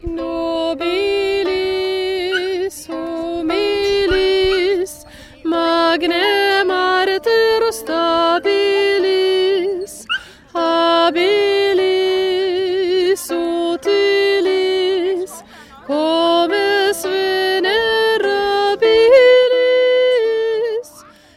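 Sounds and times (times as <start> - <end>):
Viking music: 0.0 - 21.3
person singing: 0.0 - 21.3.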